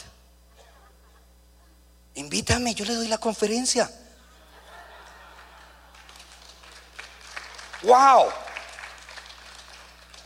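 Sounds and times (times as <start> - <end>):
laughter: 0.5 - 1.8, 4.2 - 6.4
speech: 2.2 - 4.0, 7.9 - 8.4
sparse audience applause: 5.0 - 10.2.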